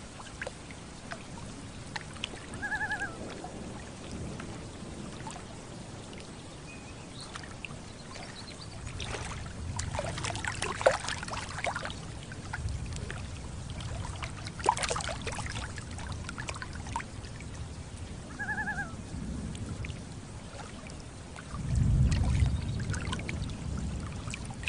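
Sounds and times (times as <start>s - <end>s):
gentle water lapping and splashing on a lake: 0.0s - 24.6s
thunder rumbling: 2.4s - 6.6s, 8.7s - 24.6s
two-note loon call: 2.6s - 3.2s, 18.4s - 19.0s.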